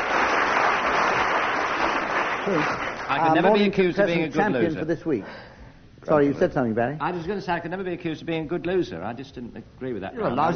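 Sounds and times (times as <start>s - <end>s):
audience round of applause: 0.0s - 3.6s
speech: 2.5s - 10.5s.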